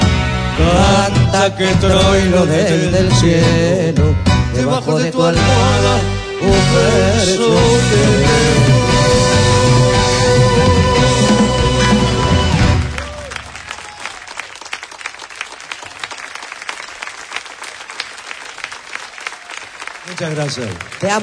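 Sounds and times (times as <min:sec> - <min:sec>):
loud musical passage: 0:00.0 - 0:13.4
speech: 0:00.6 - 0:08.9, 0:20.2 - 0:21.2
audience applause: 0:12.0 - 0:21.2.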